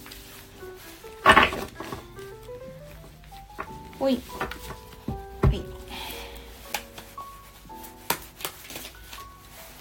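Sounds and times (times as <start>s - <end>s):
tarot cards being shuffled: 0.0s - 5.3s, 6.6s - 9.7s
speech: 4.0s - 4.7s.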